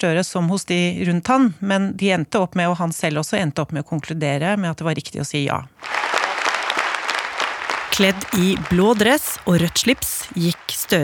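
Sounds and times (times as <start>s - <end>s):
speech: 0.0s - 5.9s, 8.0s - 11.0s
standing ovation applause from a large crowd: 5.8s - 11.0s.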